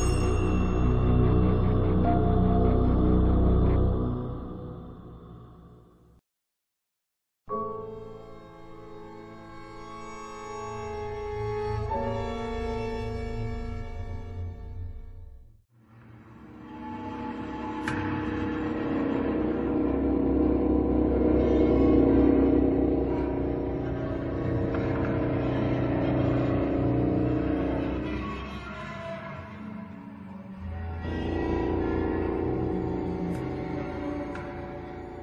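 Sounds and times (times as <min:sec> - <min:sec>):
horror sound effects: 0:00.0 - 0:06.0, 0:15.9 - 0:35.2
horror music: 0:00.0 - 0:06.2, 0:07.6 - 0:35.2.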